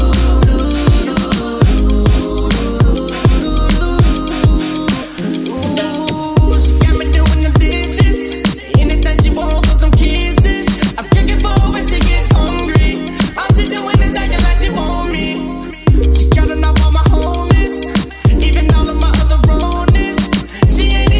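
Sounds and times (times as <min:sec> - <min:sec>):
dancehall remix acapella vocals: 0:00.0 - 0:21.1.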